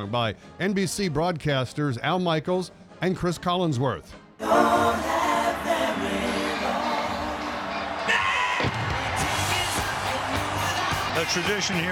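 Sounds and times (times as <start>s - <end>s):
speech: 0.0s - 5.1s, 11.2s - 11.9s
huge stadium crowd cheering: 6.3s - 11.9s.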